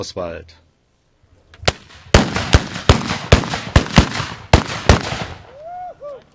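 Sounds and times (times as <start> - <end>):
hand-held ceremonial black-powder mortars fired at a salute-shooting event: 1.6 - 5.5.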